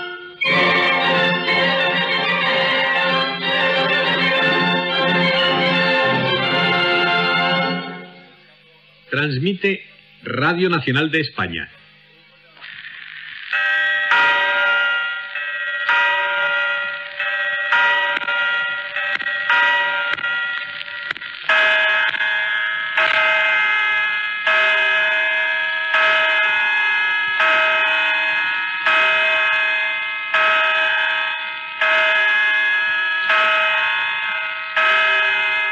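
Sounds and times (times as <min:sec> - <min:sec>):
public clock of the Puerta del Sol chiming the hour: 0:00.0 - 0:08.5, 0:12.7 - 0:35.7
speech: 0:09.2 - 0:11.8.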